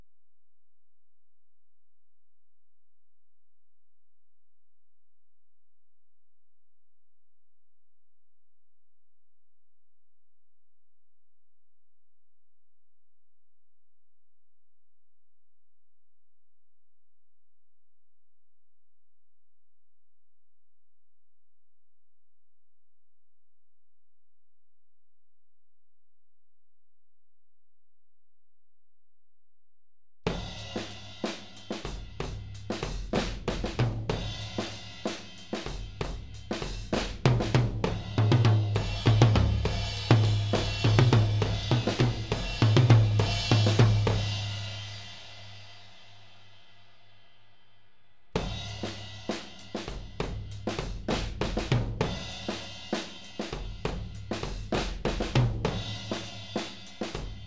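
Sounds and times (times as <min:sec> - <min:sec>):
tom drums: 0:30.3 - 0:45.0, 0:48.4 - 0:57.4.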